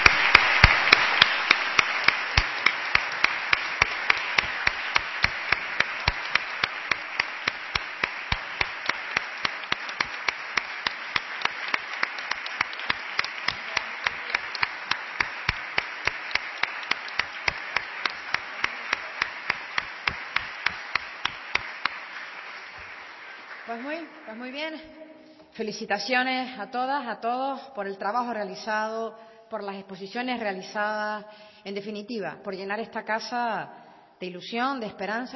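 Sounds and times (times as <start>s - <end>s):
audience applause: 0.0s - 24.3s
speech: 23.8s - 25.0s, 25.6s - 35.3s.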